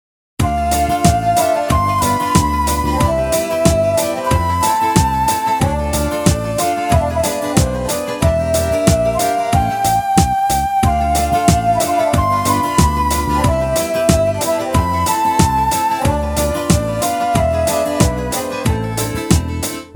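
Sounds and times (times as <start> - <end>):
melody: 0.4 - 19.7.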